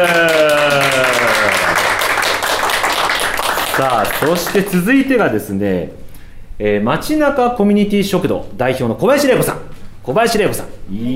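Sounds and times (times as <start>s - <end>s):
audience applause: 0.0s - 4.8s
speech: 3.8s - 6.0s, 6.6s - 11.1s.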